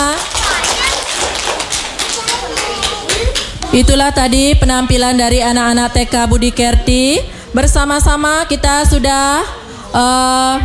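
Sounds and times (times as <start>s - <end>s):
audience clapping: 0.0s - 3.8s
speech: 3.8s - 10.6s.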